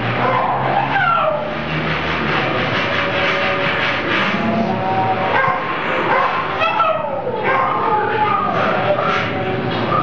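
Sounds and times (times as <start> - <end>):
irritated domestic dogs howling at a hotel in Laxman Jhula, Rishikesh, India: 0.2 - 1.9, 2.6 - 10.0.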